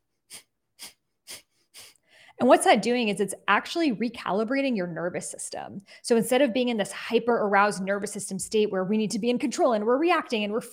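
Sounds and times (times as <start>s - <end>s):
quick sharp Breath of Fire breaths through the nose: 0.3s - 2.4s
speech: 2.4s - 10.7s.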